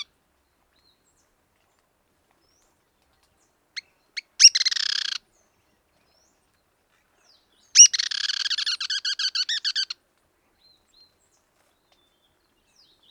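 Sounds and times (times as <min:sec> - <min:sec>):
Black-crested Tit-Tyrant Anairetes nigrocristatus trilling and ticking: 0:04.4 - 0:05.2, 0:07.8 - 0:10.0.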